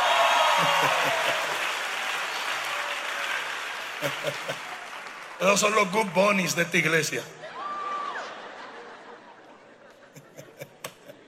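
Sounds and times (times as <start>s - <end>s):
audience applauding: 0.0s - 8.4s
laughter: 0.4s - 1.7s, 4.0s - 4.8s, 7.4s - 11.2s
speech: 0.6s - 1.4s, 4.0s - 4.7s, 5.4s - 7.4s.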